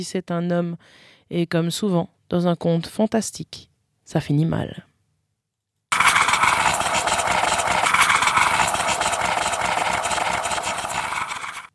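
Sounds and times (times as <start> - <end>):
speech: 0.0 - 4.9
coffee maker: 5.9 - 11.7.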